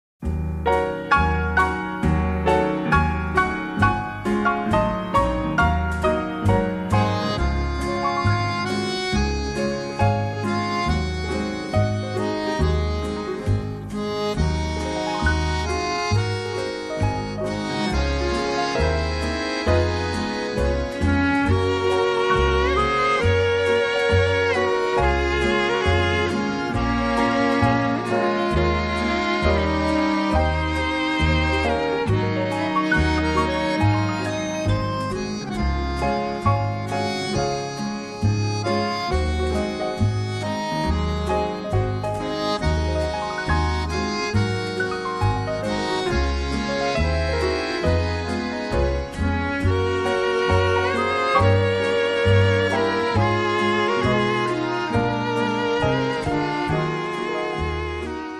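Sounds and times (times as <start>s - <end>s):
accordion band playing: 0.4s - 58.3s.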